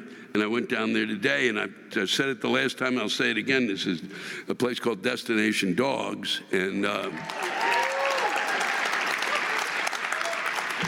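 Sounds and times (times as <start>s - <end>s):
speech: 0.4s - 7.6s
audience applause: 7.1s - 10.8s.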